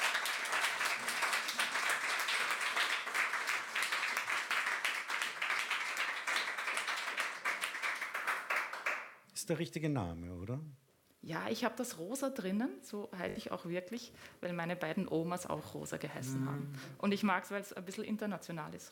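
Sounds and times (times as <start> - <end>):
audience applause: 0.0 - 9.1
speech: 9.5 - 18.8.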